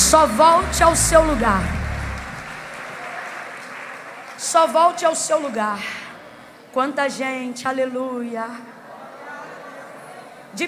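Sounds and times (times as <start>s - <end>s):
audience applauding: 0.0s - 4.5s
speech: 0.1s - 1.8s, 4.5s - 6.1s, 6.8s - 8.7s.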